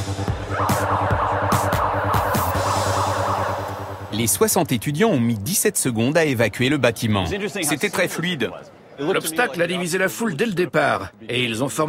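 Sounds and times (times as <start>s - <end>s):
building fire alarm going off: 0.5s - 4.2s
speech: 4.2s - 11.8s.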